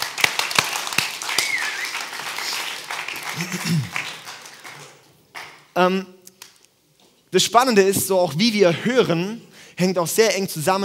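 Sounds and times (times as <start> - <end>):
crowd applause: 0.0 - 5.5
speech: 3.4 - 4.0, 5.8 - 6.2, 7.3 - 10.8.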